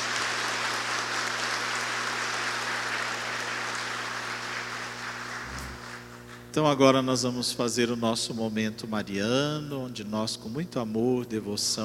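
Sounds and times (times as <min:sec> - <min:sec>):
audience applause: 0:00.0 - 0:06.2
low constant hum: 0:05.4 - 0:06.4
speech: 0:06.6 - 0:11.8.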